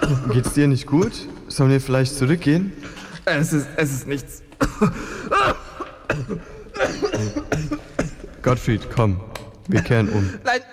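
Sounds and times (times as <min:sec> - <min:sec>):
harsh coughing: 0:00.0 - 0:00.6, 0:04.5 - 0:08.4, 0:09.7 - 0:10.5
speech: 0:00.1 - 0:05.6, 0:06.2 - 0:10.7
sharp gasping breaths: 0:02.8 - 0:03.3, 0:04.7 - 0:08.4.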